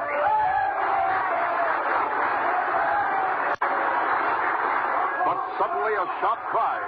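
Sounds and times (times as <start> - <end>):
crowd of miners cheering and applauding: 0.0 - 6.8
speech: 5.6 - 6.8.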